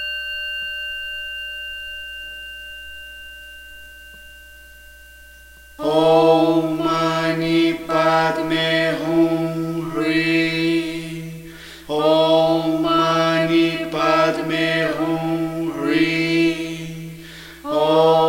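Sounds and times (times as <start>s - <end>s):
Buddhist mantra chanting: 5.8s - 18.2s.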